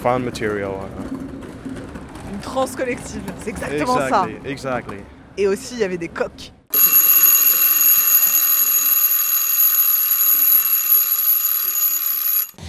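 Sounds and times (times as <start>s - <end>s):
speech: 0.0s - 1.2s, 2.4s - 7.0s
alarm clock ringing: 6.7s - 12.6s.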